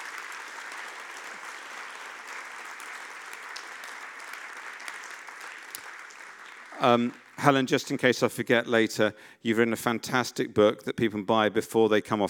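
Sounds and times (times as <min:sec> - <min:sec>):
audience applause welcoming a speaker onto the stage: 0:00.0 - 0:07.8
speech: 0:06.8 - 0:12.2.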